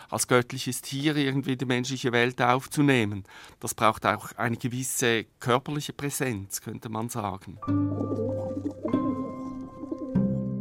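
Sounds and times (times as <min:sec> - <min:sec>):
speech: 0:00.1 - 0:09.4
pigeon cooing: 0:07.9 - 0:10.3.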